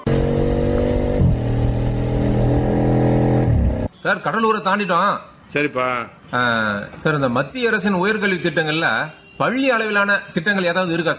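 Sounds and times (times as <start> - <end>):
car engine as the vehicle sets off and drives: 0.0 - 3.9
speech: 4.0 - 11.1.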